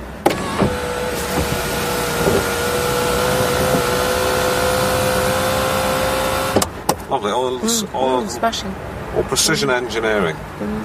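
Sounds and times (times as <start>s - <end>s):
car automatic sunroof servo motors whirring: 0.3s - 6.6s
speech: 7.1s - 10.8s.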